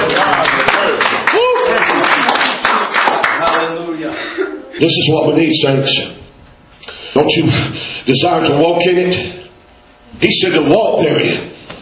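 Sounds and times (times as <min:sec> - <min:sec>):
church audience clapping: 0:00.0 - 0:03.9
speech: 0:04.8 - 0:06.2, 0:07.2 - 0:09.4, 0:10.2 - 0:11.5.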